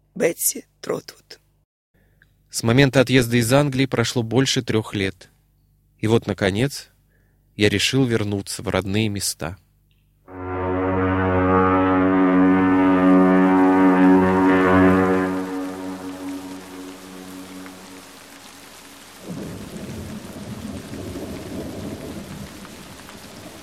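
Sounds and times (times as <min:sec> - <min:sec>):
speech: 0:00.2 - 0:01.4, 0:02.5 - 0:05.3, 0:06.0 - 0:06.9, 0:07.6 - 0:09.6
long loud low droning horn-like tone: 0:10.3 - 0:19.0
rain on a cold dark autumn evening in England: 0:12.0 - 0:23.6.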